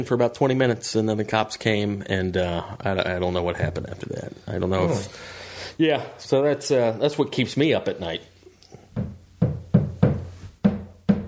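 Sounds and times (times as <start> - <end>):
speech: 0.0 - 8.3
neighbour hammering: 8.9 - 11.2.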